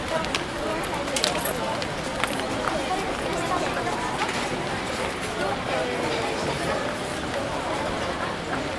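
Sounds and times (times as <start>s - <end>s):
restaurant terrace ambience: 0.0s - 8.7s.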